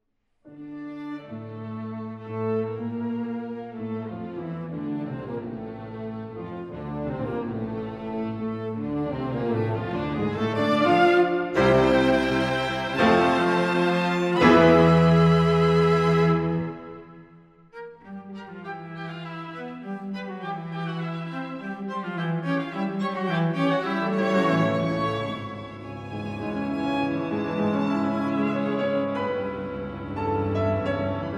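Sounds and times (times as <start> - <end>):
piano quintet playing: 0.6 - 31.3.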